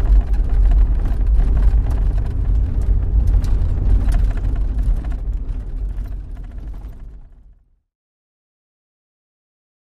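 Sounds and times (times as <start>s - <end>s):
Jeep Wagoneer normal driving from the interior: 0.0s - 7.5s.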